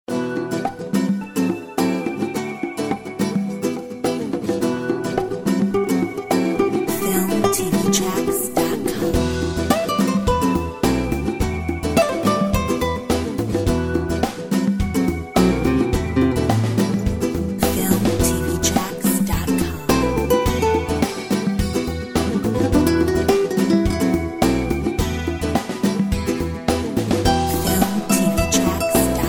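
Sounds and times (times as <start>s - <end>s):
flamenco music: 0.1s - 29.2s.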